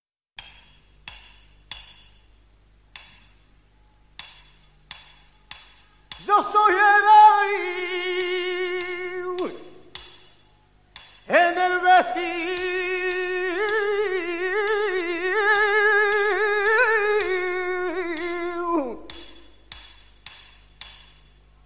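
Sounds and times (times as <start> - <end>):
flamenco tona: 5.9 - 10.4, 11.2 - 19.7.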